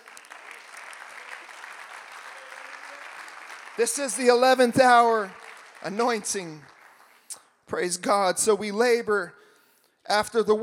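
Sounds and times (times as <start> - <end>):
audience clapping hands: 0.0 - 7.5
speech: 3.8 - 6.8, 7.7 - 9.4, 10.1 - 10.6.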